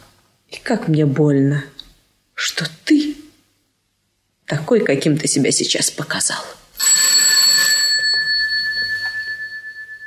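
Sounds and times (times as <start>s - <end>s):
speech: 0.7s - 1.8s, 2.5s - 3.0s, 4.5s - 7.1s
doorbell ringing: 6.8s - 10.0s.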